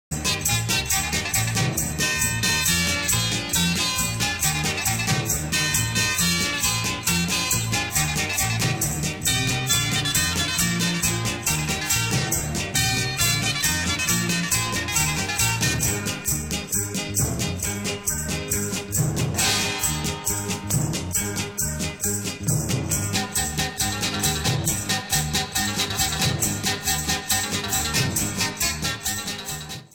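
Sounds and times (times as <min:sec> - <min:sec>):
guitars: 0:00.1 - 0:29.9.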